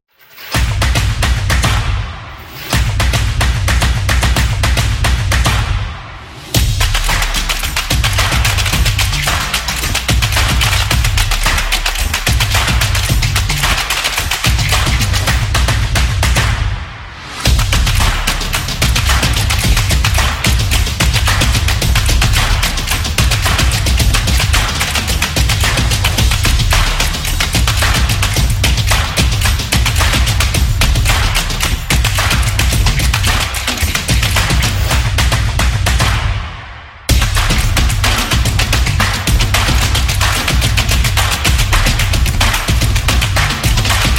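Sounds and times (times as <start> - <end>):
action drums: 0.4 - 44.1.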